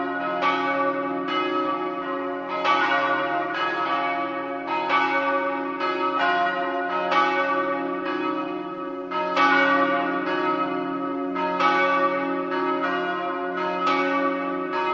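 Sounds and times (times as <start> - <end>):
bells: 0.0 - 14.9.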